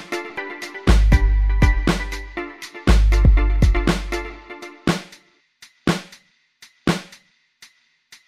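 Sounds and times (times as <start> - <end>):
summer arpeggios: 0.0 - 4.9.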